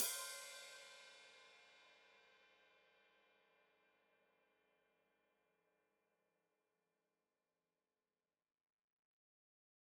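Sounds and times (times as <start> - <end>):
open hi-hat played with foot: 0.0 - 1.3.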